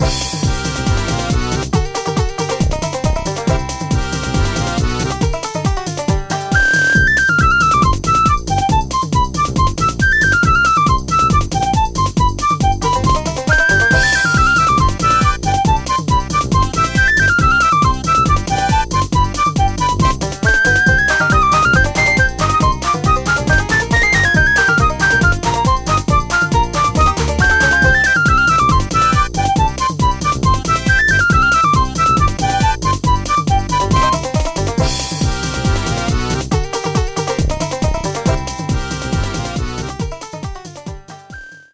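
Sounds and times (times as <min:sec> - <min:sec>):
polka music: 0:00.0 - 0:41.7.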